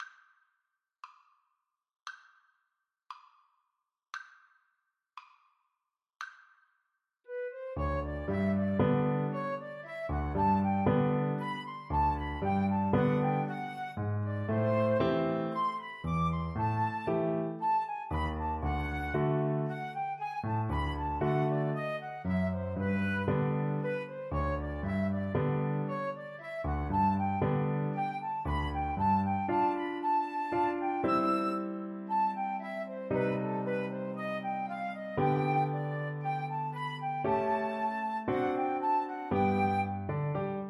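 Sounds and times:
flute duet: 7.3s - 40.6s.

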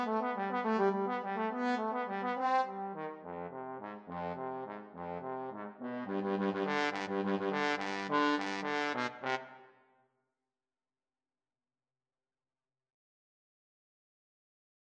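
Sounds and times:
trombone duet: 0.0s - 9.4s.

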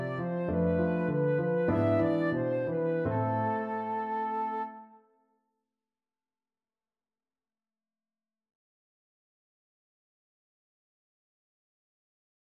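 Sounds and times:
flute melody: 0.0s - 5.1s.

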